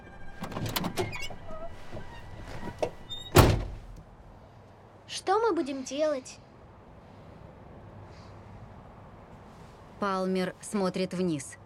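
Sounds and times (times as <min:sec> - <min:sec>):
car door shutting as someone gets in: 0:00.4 - 0:04.0
speech: 0:05.2 - 0:06.5, 0:10.0 - 0:11.6.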